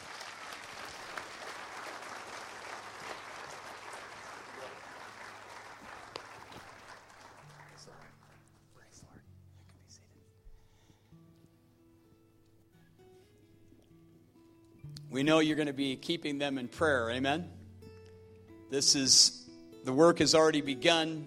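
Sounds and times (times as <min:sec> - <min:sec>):
audience round of applause: 0:00.0 - 0:08.6
speech: 0:15.1 - 0:17.6, 0:18.7 - 0:21.2.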